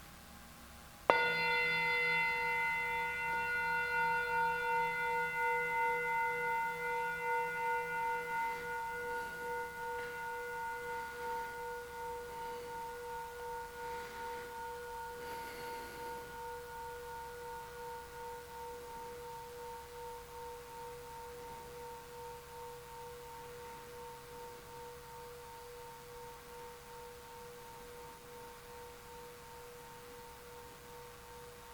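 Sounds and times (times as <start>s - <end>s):
meditation chime ringing: 1.1s - 31.7s.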